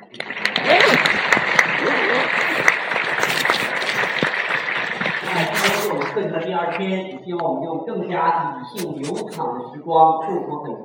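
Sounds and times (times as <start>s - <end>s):
audience applause: 0.0s - 6.2s
speech: 6.8s - 10.8s.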